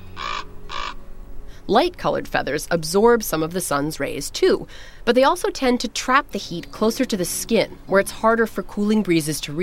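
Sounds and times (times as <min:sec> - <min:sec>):
raven cawing: 0:00.0 - 0:01.0
low steady hum: 0:00.0 - 0:09.6
speech: 0:01.7 - 0:09.6.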